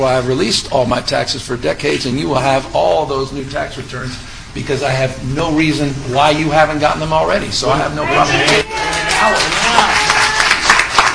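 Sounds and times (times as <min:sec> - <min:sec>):
speech: 0:00.0 - 0:10.0
audience applause after a debate answer: 0:08.4 - 0:11.1.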